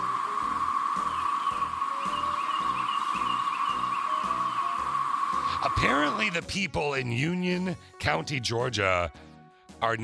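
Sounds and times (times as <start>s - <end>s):
chorus of cicadas buzzing: 0.0s - 6.3s
speech: 5.7s - 10.0s.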